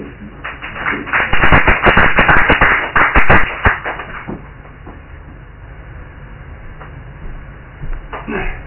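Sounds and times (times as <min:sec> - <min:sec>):
audience applause at an open-mic performance night: 0:00.4 - 0:04.2.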